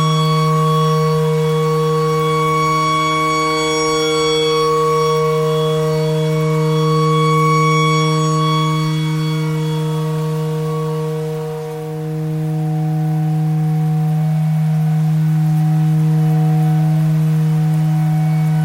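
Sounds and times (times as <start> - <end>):
clarinet notes: 0.0 - 18.6
tornado siren: 0.0 - 18.6.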